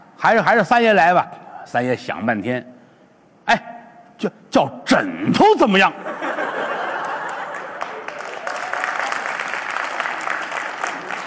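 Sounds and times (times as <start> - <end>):
speech: 0.2 - 2.7, 3.5 - 6.2
laughter: 5.9 - 8.5
applause: 7.0 - 11.2.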